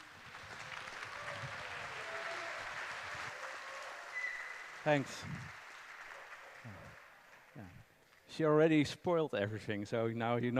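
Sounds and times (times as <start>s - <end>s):
audience applause: 0.0s - 7.8s
speech: 4.8s - 5.6s, 8.4s - 10.5s.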